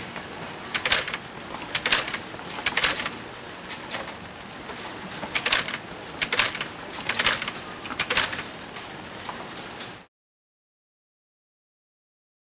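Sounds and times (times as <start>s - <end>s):
manufacturing machine running: 0.0s - 4.2s, 5.2s - 8.6s.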